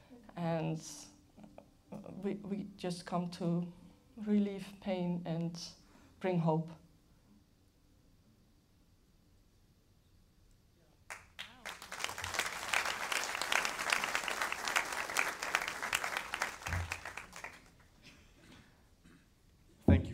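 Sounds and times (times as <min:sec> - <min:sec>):
speech: 0:00.6 - 0:01.1, 0:02.0 - 0:06.8
spontaneous audience applause: 0:11.1 - 0:18.0.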